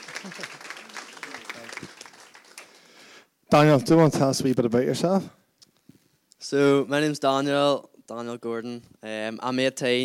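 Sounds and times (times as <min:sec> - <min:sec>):
audience applause: 0:00.0 - 0:03.1
speech: 0:03.5 - 0:05.4, 0:06.5 - 0:10.0.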